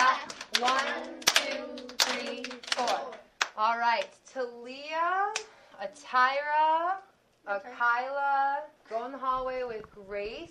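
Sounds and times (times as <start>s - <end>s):
claps and stomps from a children's dance class: 0.0s - 3.6s
speech: 5.9s - 10.4s.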